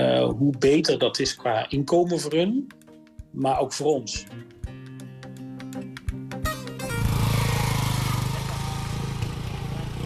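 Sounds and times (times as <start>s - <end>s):
speech: 0.3s - 4.6s
motorcycle engine idling and revving: 6.5s - 10.0s.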